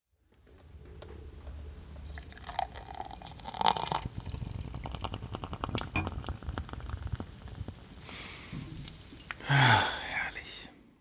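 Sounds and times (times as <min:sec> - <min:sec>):
beer pouring into a glass: 0:02.0 - 0:07.8
beer foam fizzing and bubbles popping: 0:03.9 - 0:09.3.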